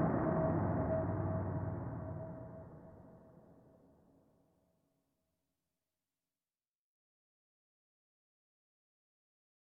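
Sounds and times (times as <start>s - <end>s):
suspense music: 0.0s - 3.2s.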